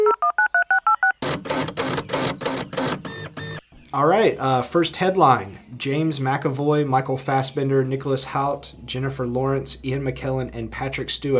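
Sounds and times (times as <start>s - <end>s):
fax machine dual-tone dialing beeps: 0.0s - 3.7s
speech: 3.9s - 11.3s.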